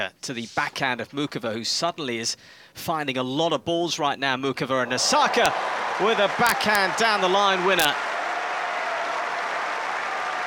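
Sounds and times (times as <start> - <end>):
speech: 0.0 - 8.1
tennis crowd applauding on Number One Court: 4.9 - 10.4.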